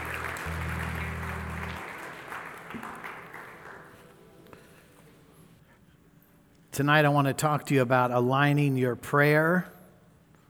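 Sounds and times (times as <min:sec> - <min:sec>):
low sustained tone: 0:00.0 - 0:02.2
audience hand clapping: 0:00.0 - 0:04.2
speech: 0:06.8 - 0:09.7.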